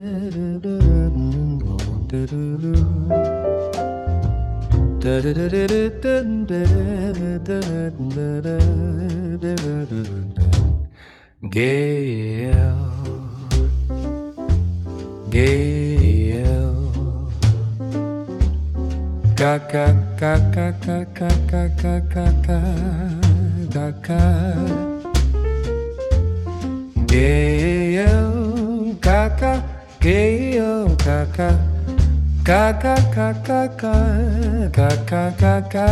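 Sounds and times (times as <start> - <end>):
jazz music: 0.3 - 10.9, 12.5 - 35.9.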